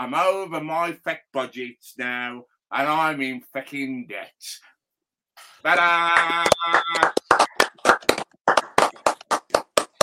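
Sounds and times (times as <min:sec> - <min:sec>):
speech: 0:00.0 - 0:04.7, 0:05.6 - 0:07.5
audience clapping: 0:05.8 - 0:10.0.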